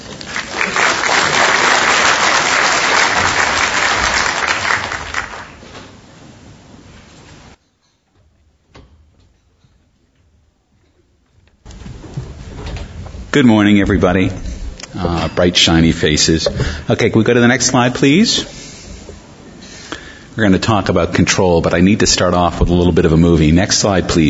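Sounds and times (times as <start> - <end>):
audience applause welcoming a speaker at a multi-day conference: 0.0 - 5.7
speech: 13.4 - 18.6, 20.4 - 24.2.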